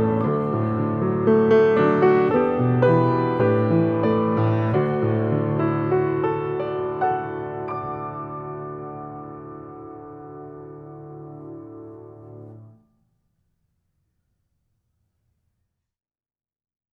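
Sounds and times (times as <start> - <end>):
instrumental music without singing: 0.0 - 13.0.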